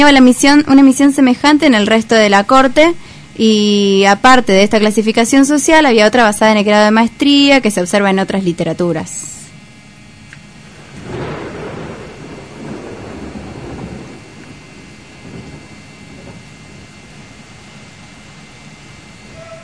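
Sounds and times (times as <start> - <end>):
speech: 0.0 - 9.3
thunder: 10.6 - 18.1.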